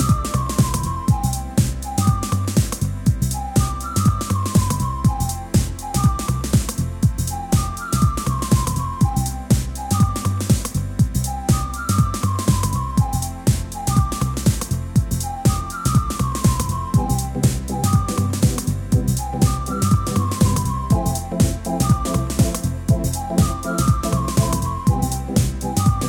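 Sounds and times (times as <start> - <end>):
instrumental house music track: 0.0 - 26.0.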